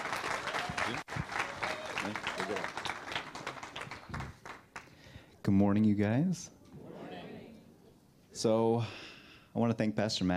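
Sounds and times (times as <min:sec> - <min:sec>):
church congregation clapping for a speaker welcomed to the pulpit: 0:00.0 - 0:05.1
speech: 0:05.5 - 0:06.6, 0:08.4 - 0:09.0, 0:09.6 - 0:10.3.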